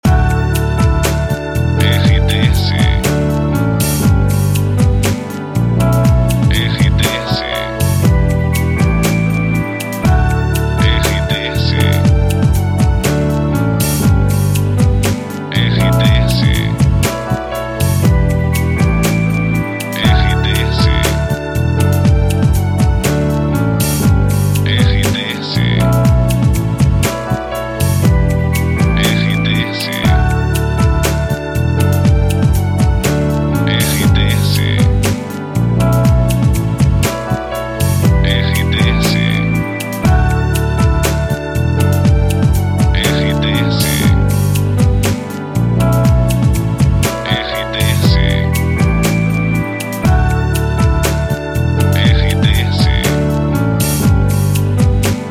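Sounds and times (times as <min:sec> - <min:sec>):
background music for voiceover: 0:00.0 - 0:55.3.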